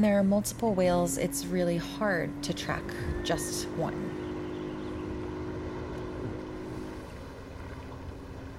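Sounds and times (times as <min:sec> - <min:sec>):
speech: 0:00.0 - 0:04.2
motorboat of whale researchers steered off Mo'orea, French Polynesia: 0:00.0 - 0:08.5
wind buffeting the microphone: 0:02.3 - 0:08.5.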